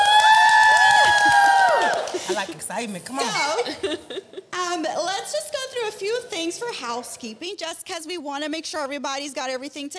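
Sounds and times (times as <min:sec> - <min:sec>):
live audience clapping: 0:00.0 - 0:02.6
speech: 0:02.4 - 0:09.9.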